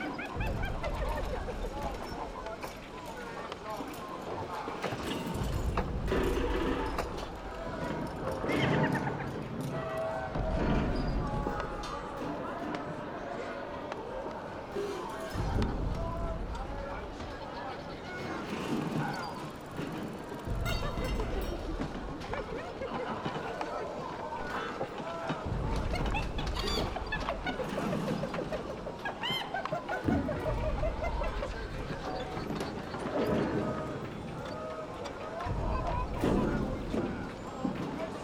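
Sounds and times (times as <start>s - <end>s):
kobold junkyard village ambience: 0.0s - 38.2s
laughter: 0.0s - 38.2s.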